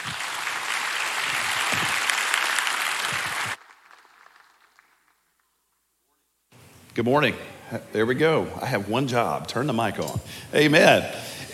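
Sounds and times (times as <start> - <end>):
church congregation applauding to welcome a returning guest speaker: 0.0 - 5.7
speech: 7.0 - 11.5.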